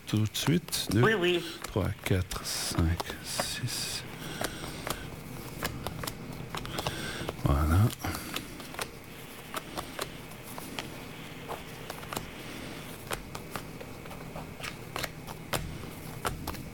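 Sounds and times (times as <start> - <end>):
faint noise: 0.0 - 16.7
playing cards being drawn and laid out for a fortune-telling reading: 0.0 - 16.7
speech: 0.1 - 4.1, 7.5 - 8.2.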